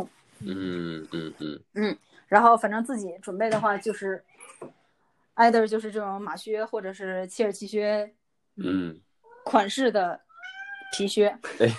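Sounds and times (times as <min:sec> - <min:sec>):
speech: 0:00.0 - 0:04.8, 0:05.4 - 0:10.2, 0:10.9 - 0:11.7
cat meowing at the door: 0:10.2 - 0:11.1.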